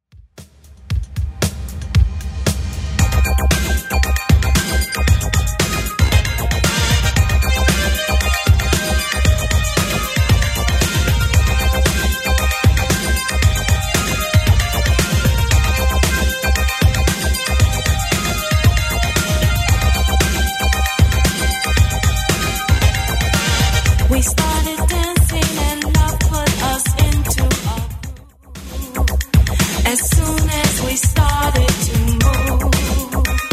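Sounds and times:
1980s style remix music at 115 bpm: 0:00.4 - 0:33.5.

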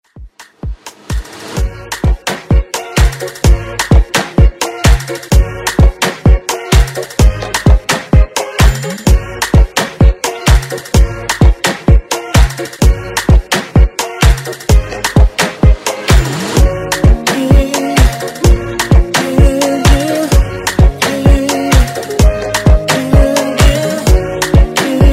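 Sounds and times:
afrobeat music: 0:00.1 - 0:25.1.

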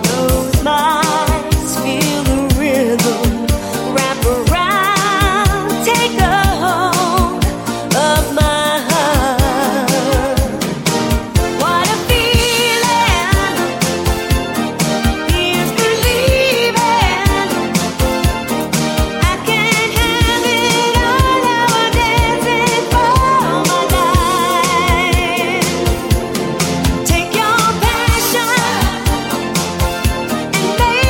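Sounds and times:
80s dance pop drum machine beat: 0:00.0 - 0:31.0.

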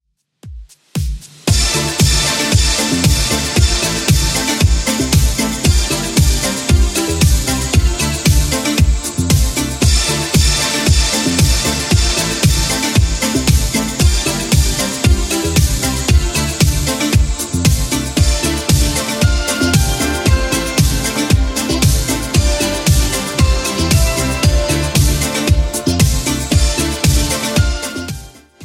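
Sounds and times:
1980s style remix music at 115 bpm: 0:01.0 - 0:28.6.

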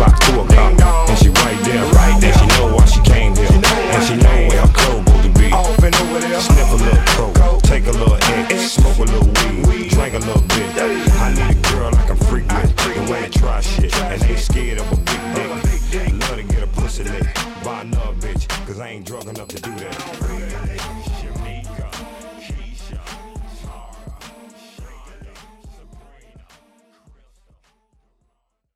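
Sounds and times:
hip hop RNB music: 0:00.0 - 0:27.6.

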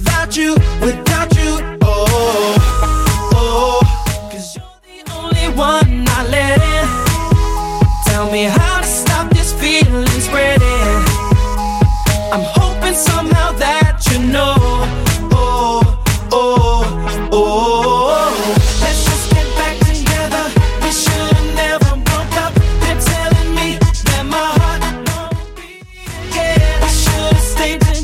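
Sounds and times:
drum loop at 120 bpm: 0:00.0 - 0:17.4, 0:18.2 - 0:28.0.

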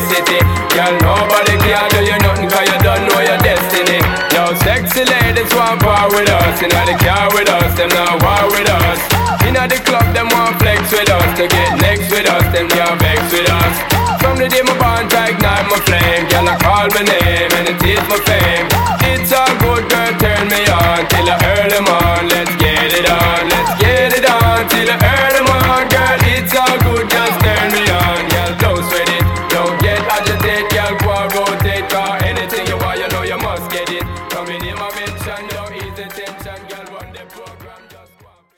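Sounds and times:
Afro Moombah beat at 100 BPM: 0:00.0 - 0:38.5.

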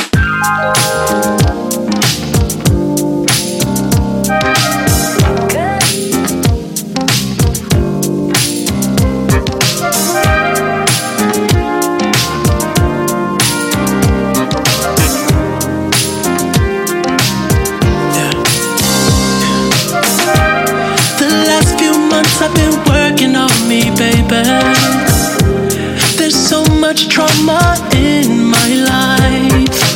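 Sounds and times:
Top 40 pop music: 0:00.1 - 0:29.9.

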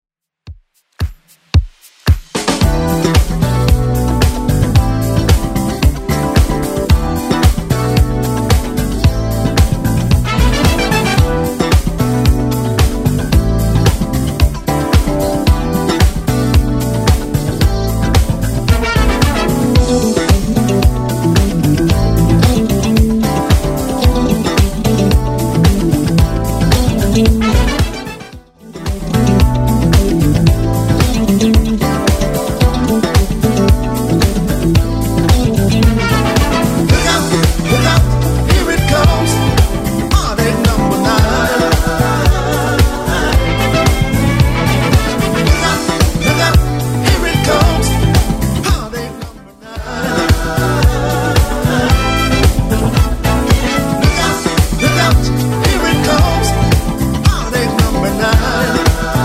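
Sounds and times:
1970s drum machine beat: 0:00.5 - 0:59.2.

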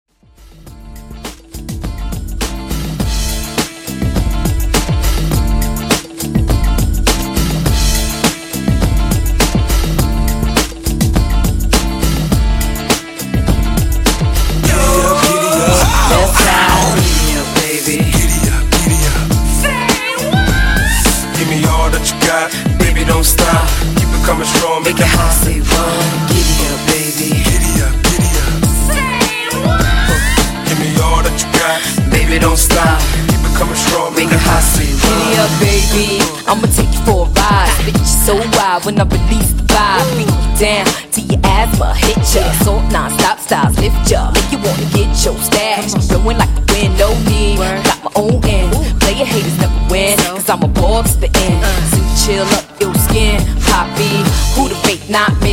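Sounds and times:
90s hip hop bass at 103 bpm: 0:00.2 - 0:55.5.

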